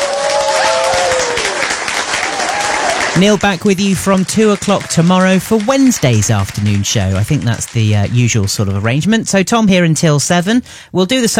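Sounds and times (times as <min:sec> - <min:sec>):
crowd applause sound effect on an afternoon radio show: 0:00.0 - 0:09.0
speech: 0:03.2 - 0:11.3.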